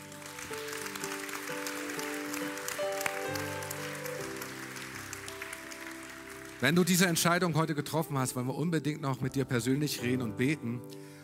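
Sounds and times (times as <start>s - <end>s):
audience applause: 0.0s - 7.6s
speech: 6.6s - 11.0s.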